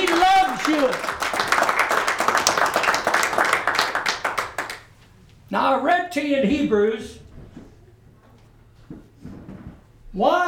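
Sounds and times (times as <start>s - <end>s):
audience hand clapping: 0.0s - 5.0s
speech: 6.1s - 7.2s, 10.2s - 10.4s.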